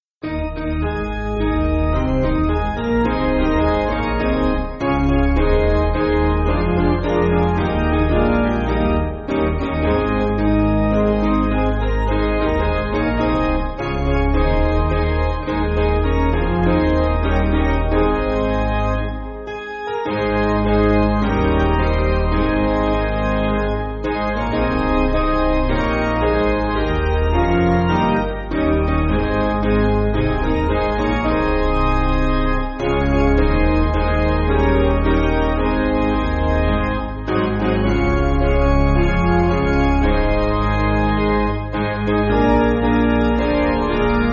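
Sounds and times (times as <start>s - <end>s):
piano backing music for churches: 0.2s - 44.3s.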